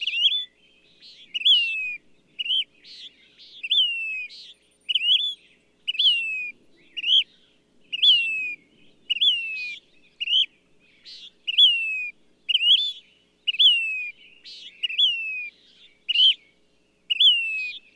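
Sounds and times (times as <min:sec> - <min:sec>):
bird whistling phrases: 0:00.0 - 0:16.5, 0:17.1 - 0:17.9.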